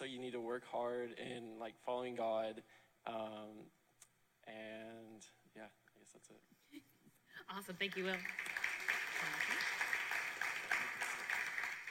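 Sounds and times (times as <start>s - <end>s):
speech: 0.0s - 3.8s, 4.5s - 8.6s, 9.2s - 9.7s
applause: 7.7s - 11.9s.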